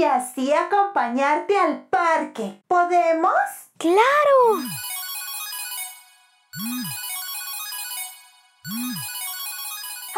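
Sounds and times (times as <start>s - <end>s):
speech: 0.0s - 4.9s, 6.6s - 7.0s, 8.7s - 9.1s
electronic voice message notification jingle: 4.5s - 10.1s.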